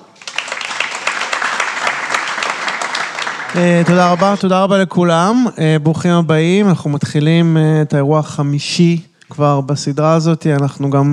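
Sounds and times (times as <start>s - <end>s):
audience applause: 0.0s - 4.5s
speech: 3.5s - 11.1s.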